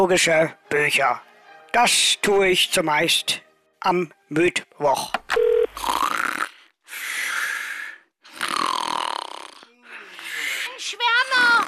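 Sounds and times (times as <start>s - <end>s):
speech: 0.0s - 6.1s
person snoring while asleep on phone: 5.7s - 11.6s.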